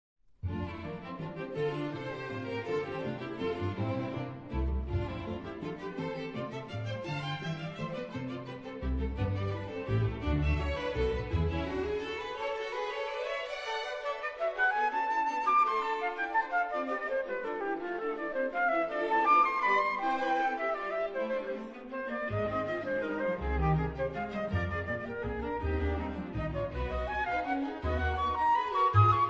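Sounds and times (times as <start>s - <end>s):
flute with string orchestra: 0.4s - 29.2s.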